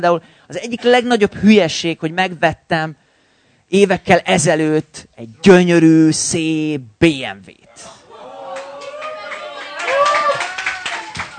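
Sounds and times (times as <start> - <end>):
speech: 0.0 - 3.0, 3.7 - 8.0
hand clapping: 8.6 - 11.3.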